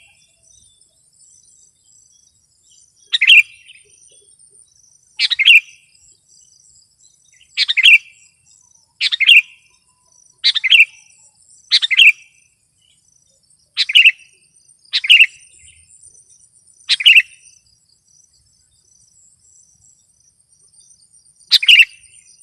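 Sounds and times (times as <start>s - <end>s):
sooty-headed bulbul singing: 0.0s - 22.4s.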